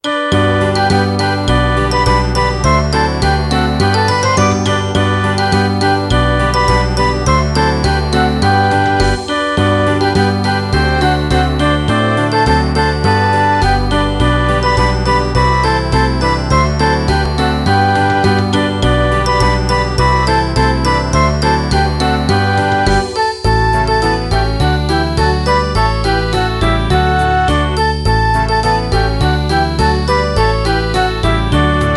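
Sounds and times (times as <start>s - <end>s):
children's songs playback: 0.0s - 31.9s.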